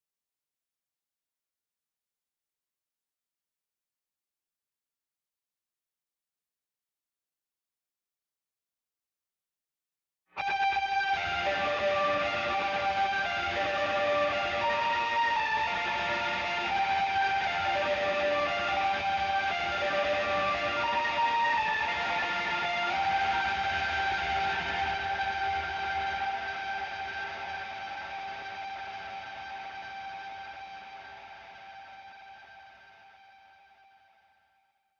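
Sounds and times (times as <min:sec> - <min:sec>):
guitars: 0:10.4 - 0:33.9.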